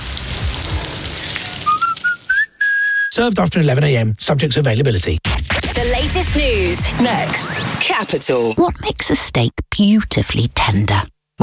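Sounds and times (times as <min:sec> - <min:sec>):
beef burger patties sizzling: 0:00.0 - 0:02.4
thin high whistling tone: 0:01.4 - 0:03.2
speech: 0:03.2 - 0:05.3, 0:06.0 - 0:11.4.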